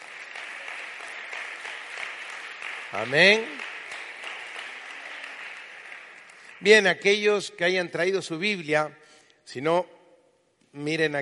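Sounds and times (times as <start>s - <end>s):
audience applause: 0.0s - 7.2s
speech: 2.9s - 3.6s, 6.6s - 10.0s, 10.8s - 11.1s.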